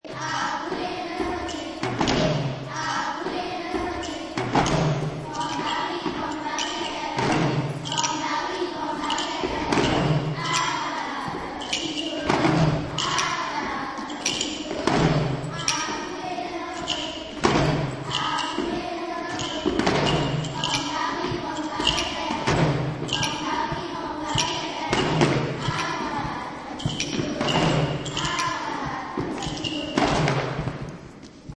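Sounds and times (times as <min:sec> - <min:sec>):
chanting: 0:00.0 - 0:30.7.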